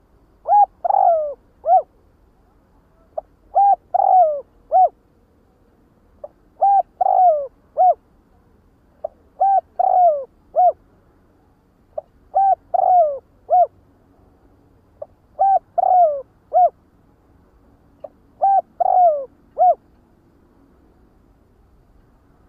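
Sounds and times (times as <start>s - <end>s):
spotted dove cooing: 0.4s - 2.0s, 3.1s - 5.0s, 6.2s - 8.0s, 9.0s - 10.8s, 12.0s - 13.8s, 15.0s - 16.8s, 18.0s - 19.9s.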